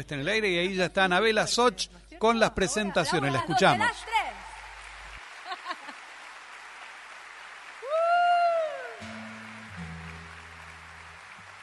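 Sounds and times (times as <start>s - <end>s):
speech: 0.0s - 4.1s
audience applause in concert hall: 4.3s - 11.6s.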